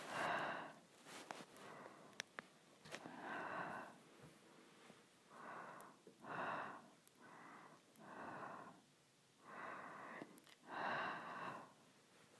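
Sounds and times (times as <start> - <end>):
person breathing slowly: 0.0 - 2.2, 2.9 - 12.3.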